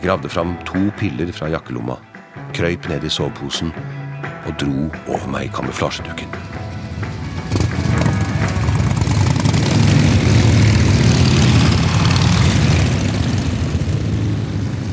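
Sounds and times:
speech: 0:00.0 - 0:06.5
motorcycle engines roaring as they leave: 0:05.5 - 0:14.9.

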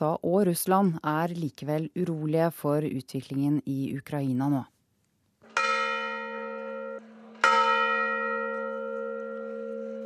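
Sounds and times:
speech: 0:00.0 - 0:04.8
church bells tolling for a funeral: 0:05.5 - 0:10.0.

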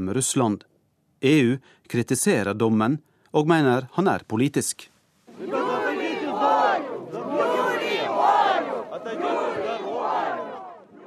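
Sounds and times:
speech: 0:00.0 - 0:05.6
demonstrators chanting outside a prison: 0:05.3 - 0:11.0.

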